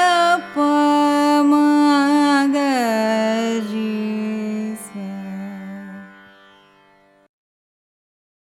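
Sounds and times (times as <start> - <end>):
carnatic music raga ascending and descending scale: 0.0 - 7.3.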